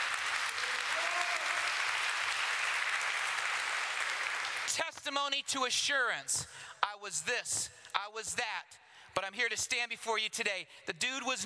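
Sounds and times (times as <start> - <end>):
audience applause: 0.0 - 4.8
speech: 4.8 - 11.4.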